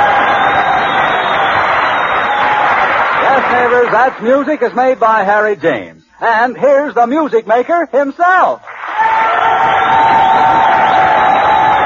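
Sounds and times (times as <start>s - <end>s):
audience applause: 0.0s - 4.5s, 8.7s - 11.8s
speech: 3.8s - 8.7s.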